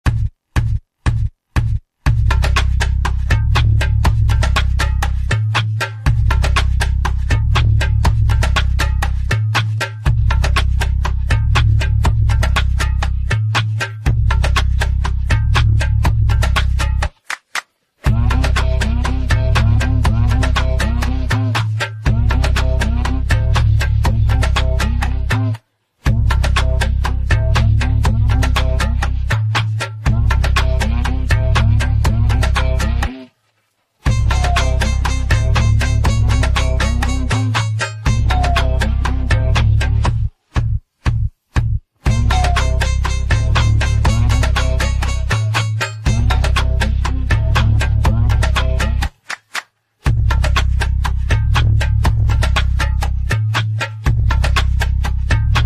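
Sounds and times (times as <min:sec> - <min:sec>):
instrumental music: 0:00.0 - 0:33.3, 0:34.0 - 0:55.6.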